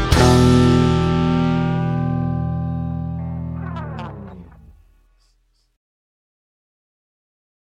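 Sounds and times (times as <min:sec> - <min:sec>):
microsynth square wave jam: 0:00.1 - 0:04.9.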